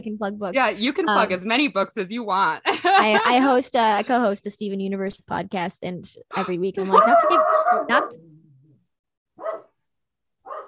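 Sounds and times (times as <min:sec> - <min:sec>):
speech: 0:00.0 - 0:08.3
laughter: 0:02.6 - 0:03.5
dog barking at home: 0:06.9 - 0:08.2, 0:09.4 - 0:09.8, 0:10.4 - 0:10.6.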